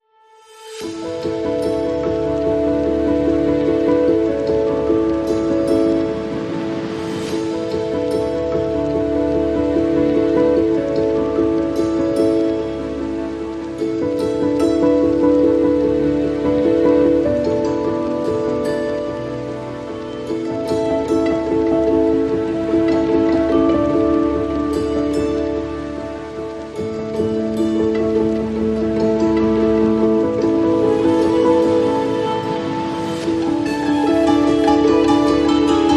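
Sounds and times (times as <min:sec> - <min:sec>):
ambient music: 0:00.0 - 0:35.9.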